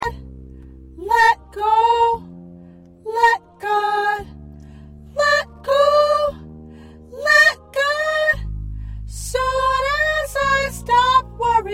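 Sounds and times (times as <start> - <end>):
soprano singing: 1.0 - 2.3, 3.0 - 4.3, 5.1 - 6.4, 7.1 - 8.5, 9.1 - 11.7.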